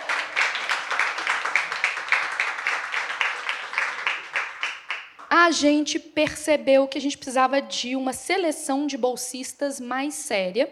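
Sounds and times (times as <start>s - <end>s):
applause: 0.0s - 5.4s
speech: 5.4s - 10.6s.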